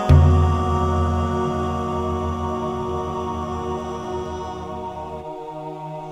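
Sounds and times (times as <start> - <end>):
vocal sound: 0.1 - 5.3.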